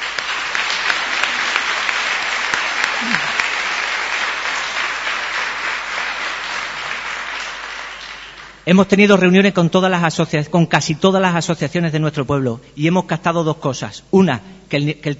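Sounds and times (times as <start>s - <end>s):
audience applause: 0.0s - 8.6s
speech: 8.7s - 15.1s.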